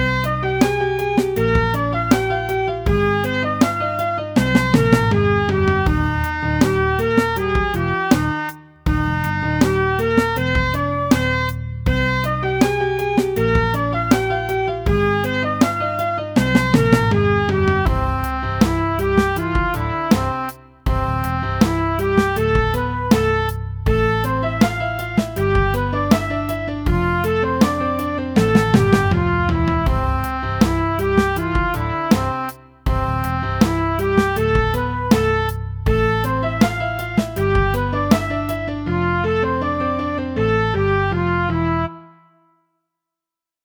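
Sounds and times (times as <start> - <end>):
happy melody: 0.0 - 42.5.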